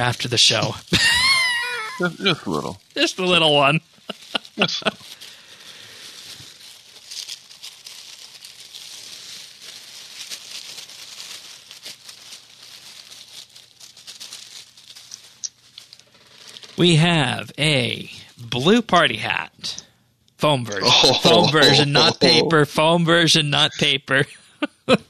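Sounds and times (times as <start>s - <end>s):
speech: 0.0s - 1.3s, 2.0s - 5.2s, 16.8s - 19.8s, 20.4s - 25.0s
hands digging through plastic-foam packing peanuts: 0.0s - 2.0s, 2.6s - 16.8s
laughter: 0.9s - 2.7s, 4.1s - 5.0s, 20.7s - 22.6s, 24.6s - 25.0s.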